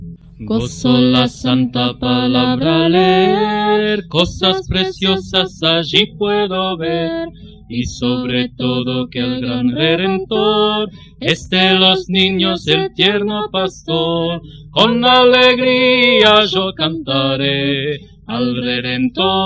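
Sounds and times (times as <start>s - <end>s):
children's choir singing from a hymnal: 0.4s - 19.4s.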